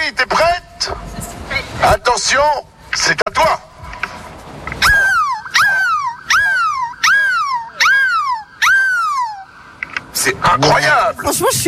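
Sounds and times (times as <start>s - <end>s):
speech: 0.1s - 1.0s, 1.8s - 3.7s, 10.2s - 11.6s
person imitating seagull cries: 4.8s - 9.5s.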